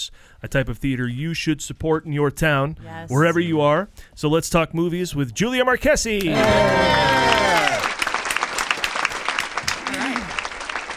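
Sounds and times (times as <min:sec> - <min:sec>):
speech: 0:00.0 - 0:07.8
real and canned applause: 0:06.2 - 0:10.9.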